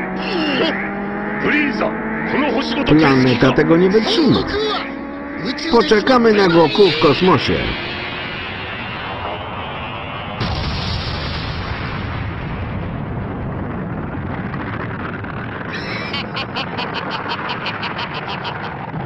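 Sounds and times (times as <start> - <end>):
laughter: 0.2 - 0.8, 1.4 - 7.8, 15.7 - 19.0
speech: 1.4 - 7.8
explosion: 10.4 - 15.7.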